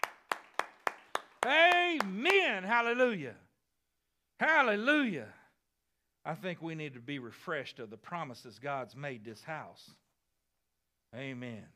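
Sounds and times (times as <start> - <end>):
audience hand clapping: 0.0 - 2.6
speech: 1.4 - 3.4, 4.4 - 5.4, 6.2 - 10.0, 11.1 - 11.7.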